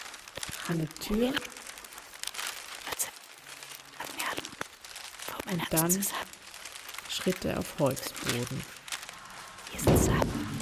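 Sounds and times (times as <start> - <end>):
newspaper or paper rustling and being folded: 0.0 - 10.6
speech: 0.7 - 1.6, 5.5 - 6.3, 7.2 - 8.8, 9.7 - 10.4.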